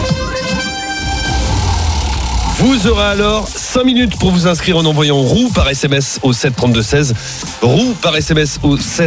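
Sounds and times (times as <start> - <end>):
radio contest alert synthetic tone with stacked harmonics: 0.5 - 3.6
pulsing low rumble: 0.8 - 5.0
speech: 2.6 - 9.0.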